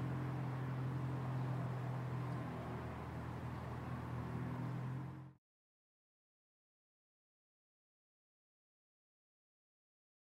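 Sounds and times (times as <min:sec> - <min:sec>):
parking lot ambience: 0:00.0 - 0:05.4.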